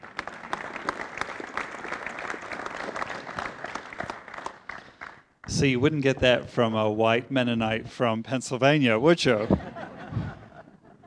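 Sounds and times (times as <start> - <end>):
crowd applause: 0.0 - 5.3
speech: 5.6 - 9.7
laughter: 9.3 - 11.0.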